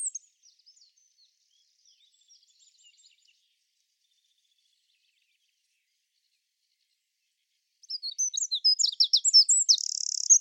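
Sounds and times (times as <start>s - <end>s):
bird calling with chirps: 7.9s - 10.3s.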